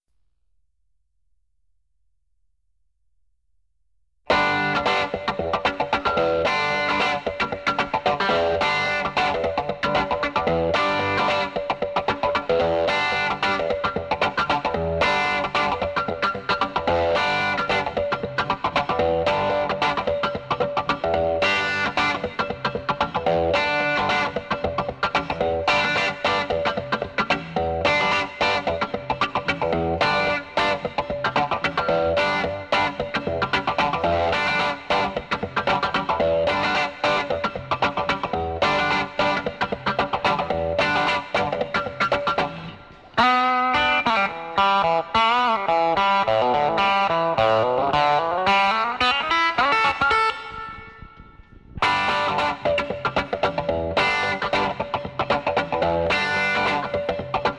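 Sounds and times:
guitar: 0:04.2 - 0:57.5.

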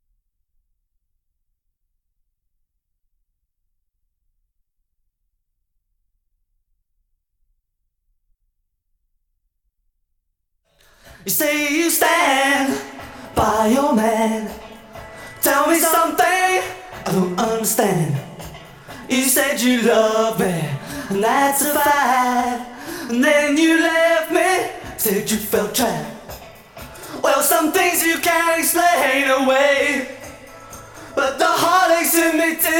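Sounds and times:
person singing: 0:10.8 - 0:32.7.

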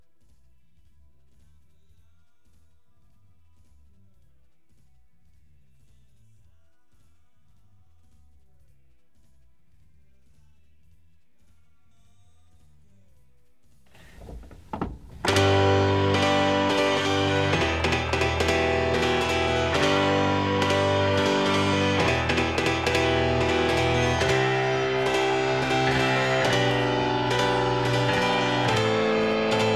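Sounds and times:
keyboard playing: 0:14.8 - 0:29.7.

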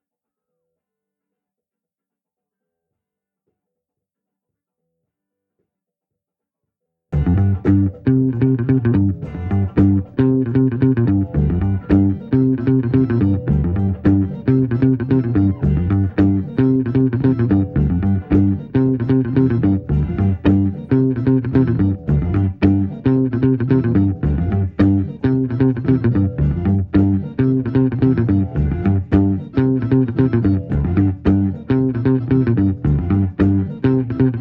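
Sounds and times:
bass: 0:07.1 - 0:34.4.

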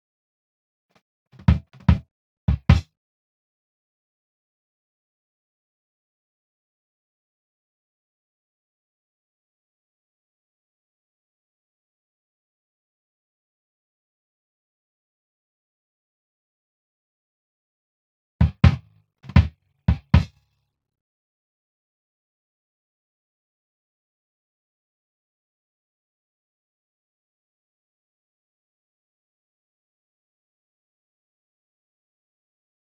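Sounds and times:
drums: 0:01.4 - 0:02.8, 0:18.4 - 0:20.3.

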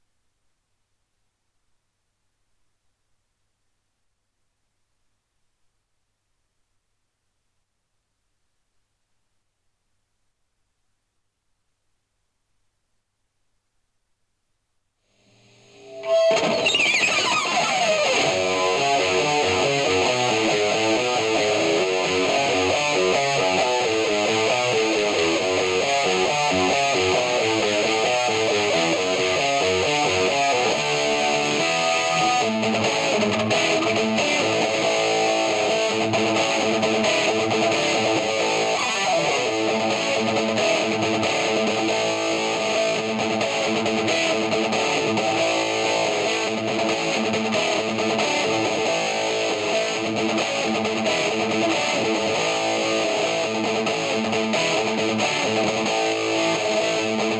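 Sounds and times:
guitar: 0:15.2 - 0:57.3.

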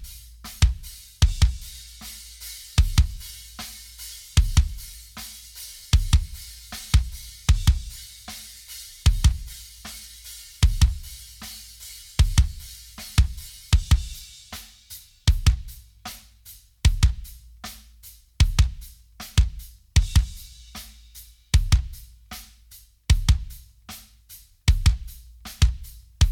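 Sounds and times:
kick drum: 0:00.0 - 0:01.8, 0:02.8 - 0:03.3, 0:04.4 - 0:04.9, 0:05.9 - 0:08.0, 0:09.1 - 0:09.6, 0:10.6 - 0:11.2, 0:12.2 - 0:14.3, 0:15.3 - 0:15.8, 0:16.8 - 0:17.5, 0:18.4 - 0:20.6, 0:21.6 - 0:22.1, 0:23.1 - 0:23.7, 0:24.7 - 0:26.3.

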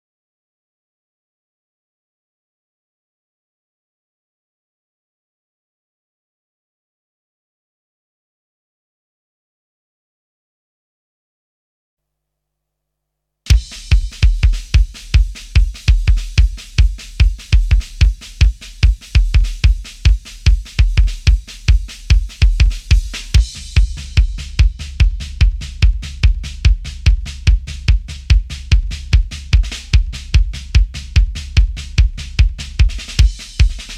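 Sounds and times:
drums: 0:13.5 - 0:33.9.

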